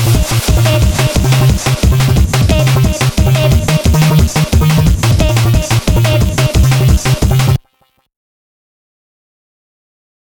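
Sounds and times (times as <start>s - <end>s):
drum and bass music: 0.0s - 7.9s.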